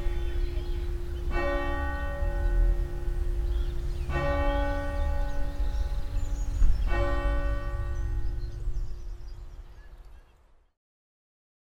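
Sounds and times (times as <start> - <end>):
church bells: 0.0 - 9.2
birds: 0.0 - 10.7.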